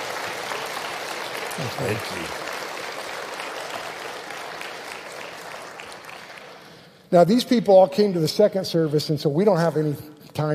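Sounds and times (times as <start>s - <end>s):
audience applause: 0.0s - 6.8s
speech: 1.6s - 2.5s, 7.1s - 10.5s.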